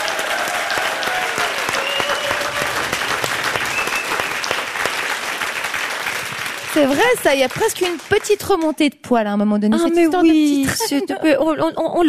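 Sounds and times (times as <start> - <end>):
faint whistles and cheers: 0.0 - 4.7
audience applause: 0.0 - 8.7
speech: 6.8 - 12.0
laughter: 9.8 - 12.0.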